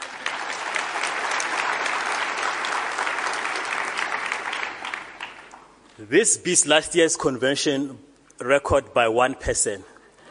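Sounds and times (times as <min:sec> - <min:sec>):
large crowd applause in a full hall: 0:00.0 - 0:05.7
speech: 0:06.0 - 0:09.9.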